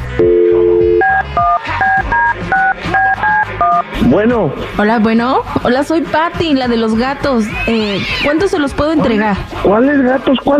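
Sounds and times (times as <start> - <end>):
speech: 0.2 - 0.4, 4.1 - 10.5
telephone keypad dialing tones: 0.2 - 3.8.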